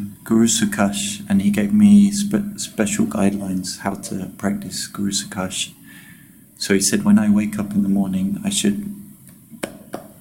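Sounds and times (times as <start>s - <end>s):
speech: 0.0s - 5.8s, 6.6s - 9.0s
hand claps: 9.3s - 10.1s.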